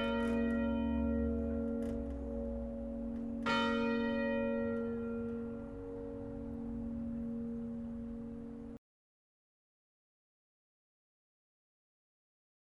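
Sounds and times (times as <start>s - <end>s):
church bells of Kópavogskirkja at the end of mass: 0.0s - 8.8s.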